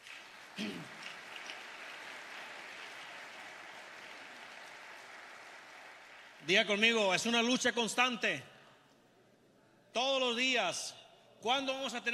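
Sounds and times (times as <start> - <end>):
audience applause: 0.0 - 6.4
speech: 6.5 - 8.5, 10.0 - 12.1.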